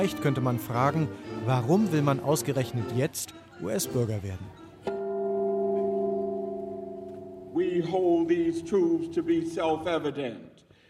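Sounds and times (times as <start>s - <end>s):
speech: 0.0s - 4.6s, 7.6s - 10.6s
gong struck from a house roof opening a naturalization ceremony: 4.9s - 9.6s.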